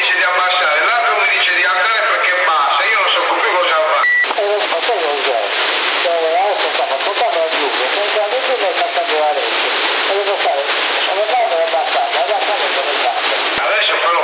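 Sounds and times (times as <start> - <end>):
voice over a CB radio transmission on 27075 kHz in Sassari with echo: 0.0 - 14.2.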